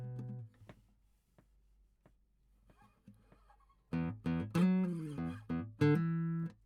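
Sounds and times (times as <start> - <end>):
guitar: 0.0 - 0.6, 2.7 - 6.6.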